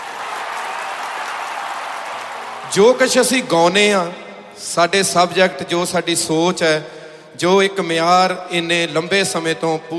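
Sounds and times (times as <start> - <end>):
audience applauding at a music performance: 0.0 - 3.2
speech: 2.7 - 9.9.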